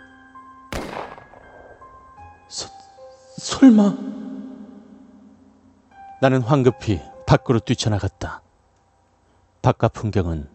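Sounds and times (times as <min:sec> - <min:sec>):
gunshot sound effect: 0:00.7 - 0:01.9
humming musical drone: 0:00.8 - 0:06.2
speech: 0:02.5 - 0:02.8, 0:03.4 - 0:04.1, 0:06.2 - 0:08.4, 0:09.6 - 0:10.5.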